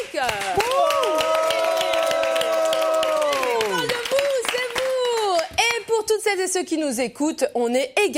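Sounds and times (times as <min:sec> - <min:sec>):
live audience applause: 0:00.2 - 0:05.5
speech: 0:06.4 - 0:08.1.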